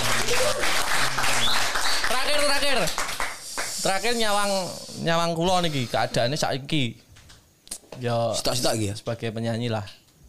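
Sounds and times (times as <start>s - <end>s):
audience applause: 0.0s - 3.8s
speech: 3.8s - 7.0s, 8.0s - 10.0s.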